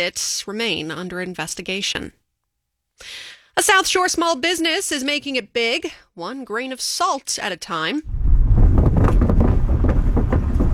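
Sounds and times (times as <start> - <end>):
speech: 0.0 - 2.2, 3.0 - 8.2
car rolling over shifting wooden planks of Old Powder Point Bridge: 8.1 - 10.7
irregular knocks and clunks of shifting planks: 8.1 - 10.7.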